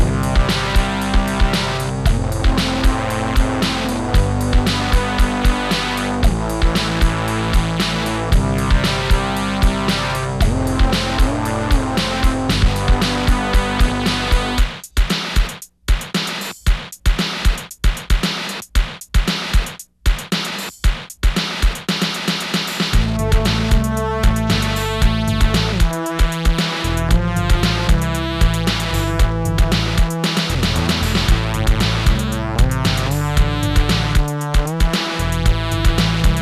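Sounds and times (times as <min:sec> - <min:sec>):
distorted Moog synthesizer: 0:00.0 - 0:14.8, 0:23.0 - 0:36.4
drums playing: 0:00.0 - 0:36.4.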